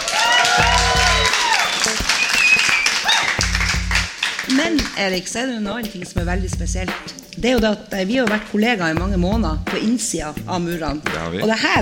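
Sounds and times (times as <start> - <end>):
whoops and cheers: 0.0 - 3.6
live audience applause: 0.0 - 4.8
speech: 4.7 - 11.7.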